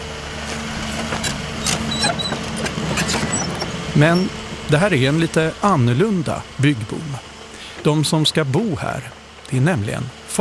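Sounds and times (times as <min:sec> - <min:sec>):
excavator engine rumble on a construction site: 0:00.0 - 0:10.3
brief metallic clinks and squeaks: 0:01.6 - 0:04.3
speech: 0:04.0 - 0:10.3.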